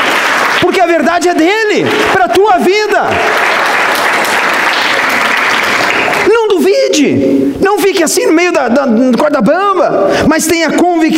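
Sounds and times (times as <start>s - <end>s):
audience applauding: 0.0s - 6.6s
speech: 0.9s - 3.5s, 7.0s - 11.1s.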